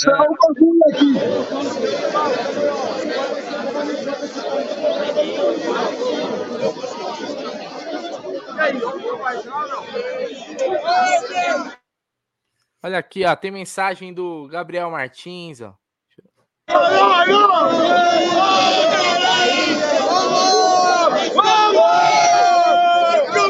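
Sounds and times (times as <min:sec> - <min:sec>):
speech: 0:00.0 - 0:07.3, 0:08.6 - 0:11.8, 0:12.8 - 0:15.8, 0:16.7 - 0:22.4
football fans celebrating: 0:00.9 - 0:11.7, 0:16.7 - 0:23.4.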